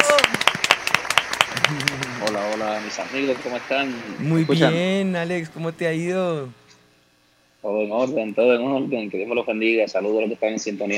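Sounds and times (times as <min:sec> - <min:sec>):
welcoming applause from a handful of people: 0:00.0 - 0:03.3, 0:04.2 - 0:06.5
speech: 0:02.8 - 0:06.6, 0:07.6 - 0:10.9.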